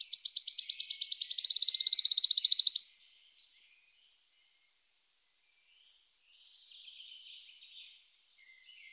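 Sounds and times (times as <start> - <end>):
wood warbler piping calls: 0.0 - 3.0.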